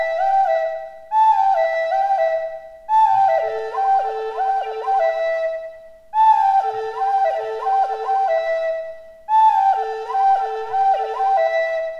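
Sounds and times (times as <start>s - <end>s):
native american flute pans melody: 0.0s - 11.9s.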